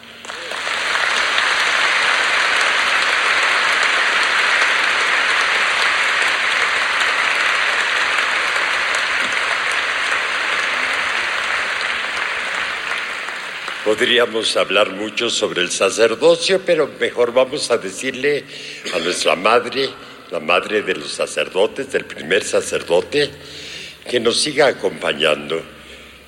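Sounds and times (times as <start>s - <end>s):
sustained applause from a sizable audience: 0.0s - 14.8s
speech: 13.9s - 25.8s.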